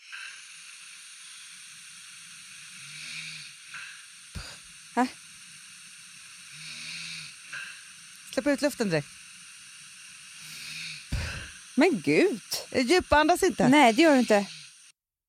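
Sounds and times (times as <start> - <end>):
steady hiss: 0.0 - 14.9
snoring recorded at night: 2.8 - 3.6, 4.4 - 4.6, 6.5 - 7.4, 10.4 - 11.6, 13.7 - 14.7
speech: 5.0 - 5.2, 8.4 - 9.2, 11.8 - 14.6.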